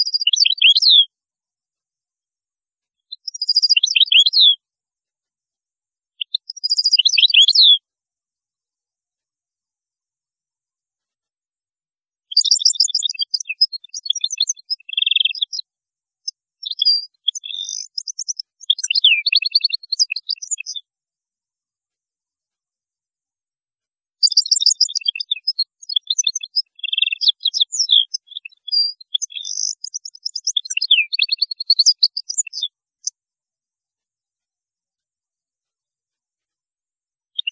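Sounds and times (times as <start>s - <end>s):
European goldfinch song: 0.0s - 1.1s, 2.9s - 4.6s, 6.2s - 7.8s, 12.3s - 20.9s, 24.2s - 33.2s, 37.3s - 37.5s.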